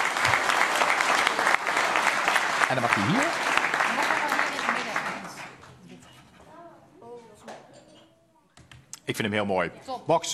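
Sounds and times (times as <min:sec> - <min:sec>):
audience applause: 0:00.0 - 0:05.7
speech: 0:02.7 - 0:03.4, 0:09.1 - 0:10.3.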